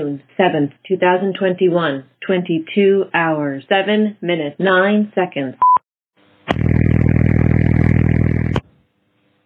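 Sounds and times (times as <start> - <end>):
speech: 0.0 - 5.7
loud harsh buzzing tone from an emergency dispatch phone system: 6.4 - 8.7.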